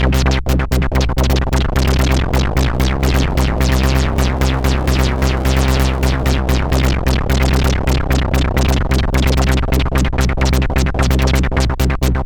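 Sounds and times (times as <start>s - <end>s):
synthesizer jam: 0.1s - 12.1s.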